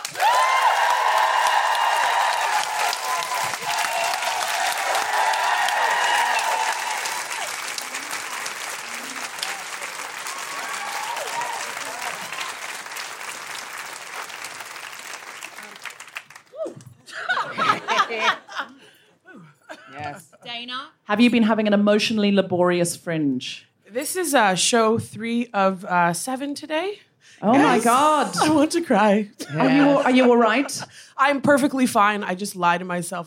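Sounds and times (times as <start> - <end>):
fringe comedy audience applauding a stand-up comedian: 0.0 - 18.3
laughter: 17.0 - 20.4, 29.4 - 31.0
speech: 21.1 - 33.2.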